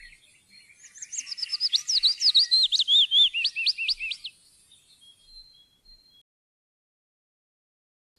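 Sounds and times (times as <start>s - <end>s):
willow warbler: 0.0s - 6.2s.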